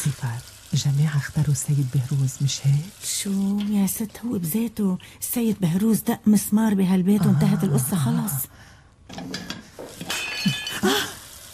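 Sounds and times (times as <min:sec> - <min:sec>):
speech: 0:00.0 - 0:09.4
ceramic plates smashing and shattering: 0:09.2 - 0:10.8.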